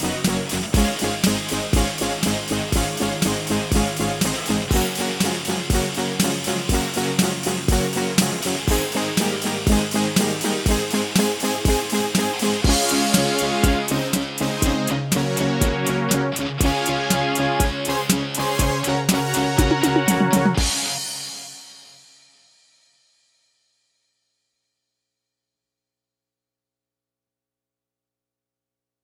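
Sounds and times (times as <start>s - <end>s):
cheesy 1980s music: 0.0s - 21.5s.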